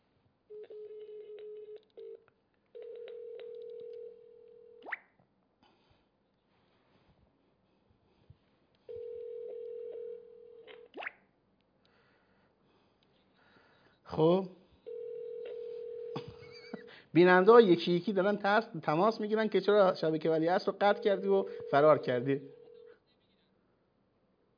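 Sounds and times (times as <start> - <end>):
telephone tones after a call is cut off: 0.5 - 2.2, 2.8 - 4.9, 8.9 - 10.8, 14.9 - 16.2, 21.0 - 22.9
speech: 14.2 - 14.6, 17.2 - 22.6.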